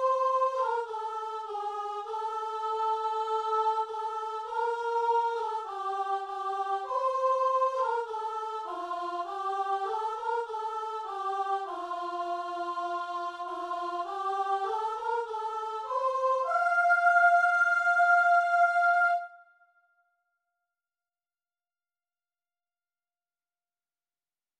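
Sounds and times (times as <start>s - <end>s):
soprano singing: 0.0s - 19.3s.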